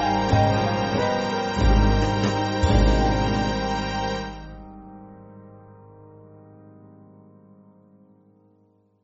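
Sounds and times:
band backing track for churches: 0:00.0 - 0:04.6.

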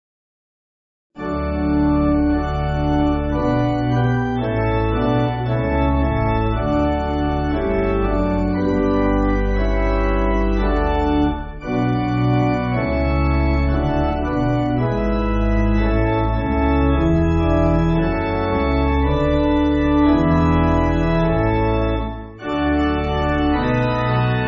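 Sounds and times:
pipe organ church music: 0:01.2 - 0:24.4.

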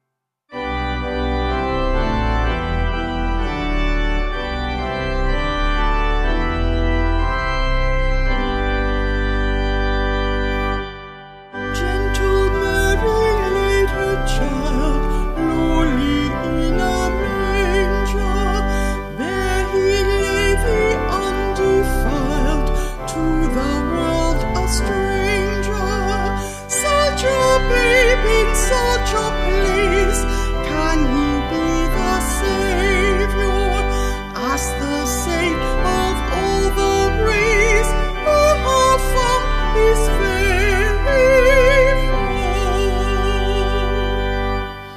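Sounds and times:
organ: 0:00.5 - 0:44.9
vocals: 0:11.6 - 0:44.9.

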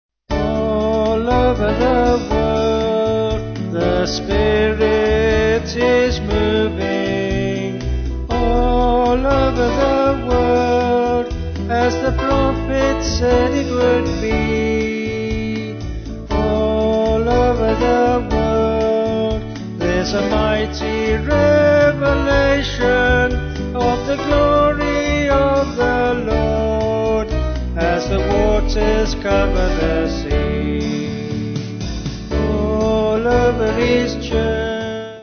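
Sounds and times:
band with vocals: 0:00.3 - 0:35.2.

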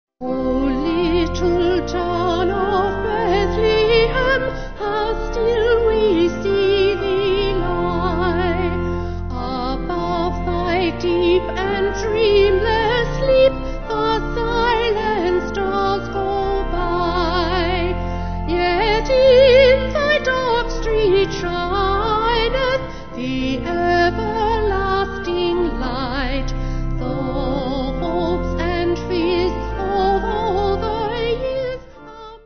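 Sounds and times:
vocal organ: 0:00.2 - 0:32.4.

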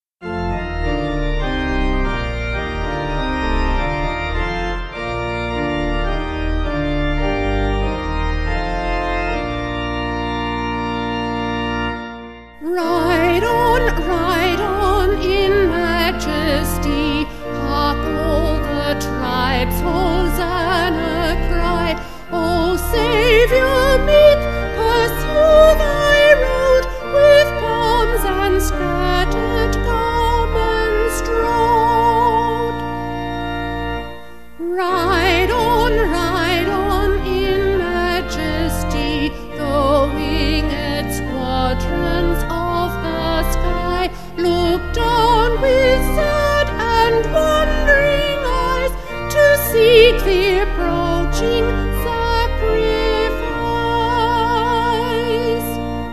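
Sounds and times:
vocal organ: 0:00.0 - 0:56.1.

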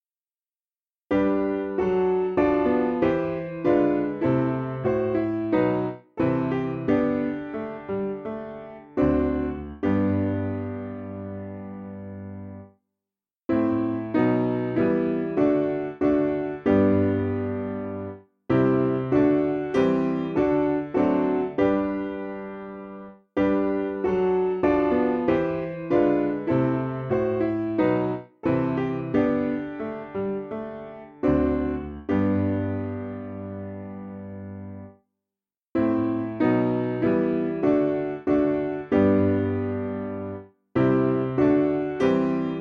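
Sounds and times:
piano piece: 0:01.1 - 0:12.8, 0:13.5 - 0:35.0, 0:35.8 - 0:42.6.

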